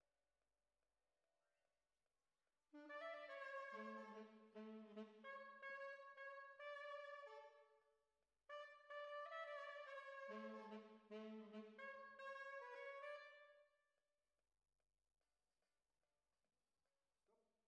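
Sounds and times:
trumpet: 0:02.8 - 0:07.7, 0:08.5 - 0:13.6.

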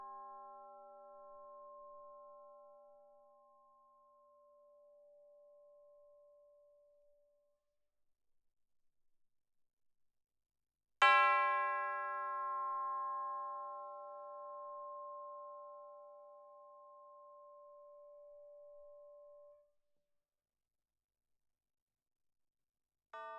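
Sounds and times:
percussion: 0:00.0 - 0:06.8, 0:11.0 - 0:19.6.

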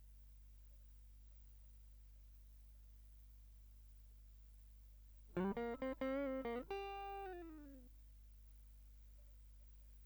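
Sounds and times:
guitar line: 0:05.4 - 0:07.8.

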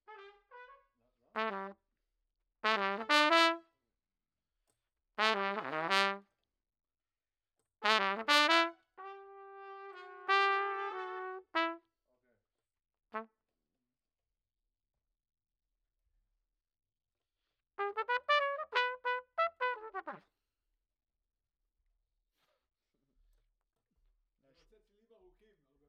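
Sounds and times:
trumpet: 0:00.0 - 0:01.8, 0:02.6 - 0:03.7, 0:05.2 - 0:06.3, 0:07.8 - 0:11.9, 0:17.8 - 0:20.3.

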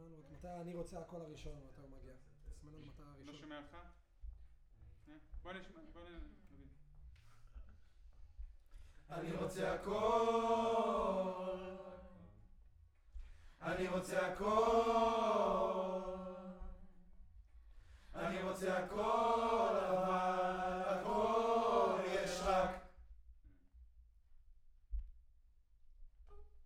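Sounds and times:
choir singing: 0:09.1 - 0:12.4, 0:13.6 - 0:17.0, 0:18.1 - 0:23.0.

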